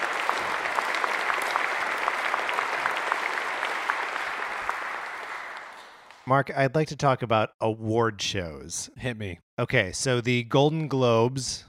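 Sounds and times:
concert audience applause welcoming conductor: 0.0 - 6.2
speech: 6.3 - 11.6.

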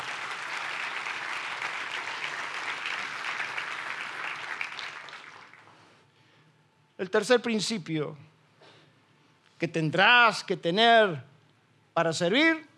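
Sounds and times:
audience applause: 0.0 - 5.8
speech: 7.0 - 8.3, 9.6 - 11.3, 12.0 - 12.7.

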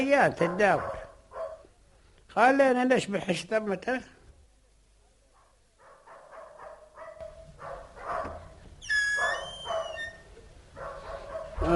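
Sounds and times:
speech: 0.0 - 1.0, 2.3 - 4.1, 11.6 - 11.7
dogs barking at night: 0.3 - 1.7, 5.8 - 8.6, 9.2 - 10.2, 10.8 - 11.6.

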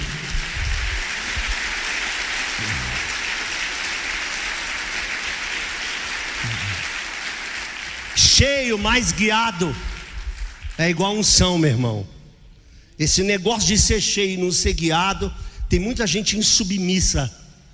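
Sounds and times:
audience applause: 0.0 - 11.3
speech: 8.4 - 9.9, 10.8 - 12.2, 13.0 - 17.4.

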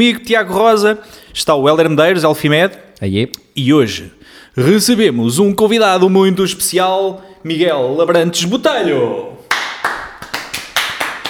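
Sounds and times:
speech: 0.0 - 9.4
people applauding: 8.8 - 11.2.

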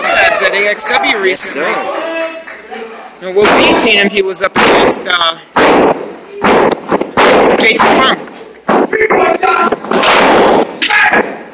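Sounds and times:
crowd noise: 0.0 - 11.5
speech: 0.4 - 2.0, 3.2 - 11.4
drop kick landing in a wrestling match: 3.4 - 4.0, 4.6 - 11.4.

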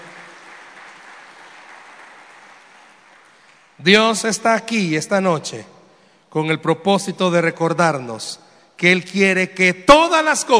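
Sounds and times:
audience applause: 0.0 - 3.8
speech: 3.8 - 10.5.

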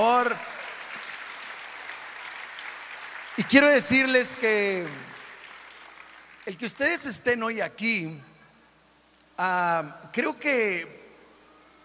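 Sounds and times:
speech: 0.0 - 0.6, 3.4 - 5.1, 6.4 - 8.3, 9.4 - 11.0
audience applauding: 0.0 - 6.6.

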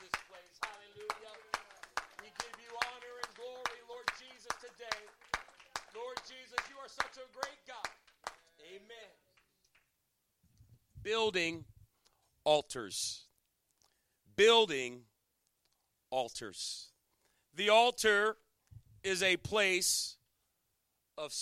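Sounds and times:
audience clapping hands: 0.0 - 10.0
speech: 11.0 - 11.7, 12.4 - 13.2, 14.4 - 15.1, 16.1 - 16.9, 17.6 - 18.4, 19.0 - 20.2, 21.2 - 21.3.

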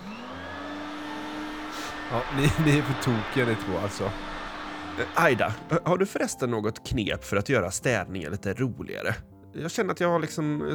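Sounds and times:
vacuum cleaner running: 0.0 - 5.8
laughter: 2.1 - 4.2
speech: 2.1 - 4.4, 5.0 - 10.7.

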